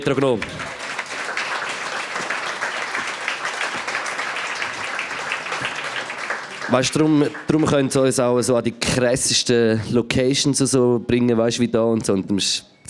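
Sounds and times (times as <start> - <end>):
speech: 0.0 - 0.6, 6.7 - 12.8
audience applause: 0.0 - 8.1.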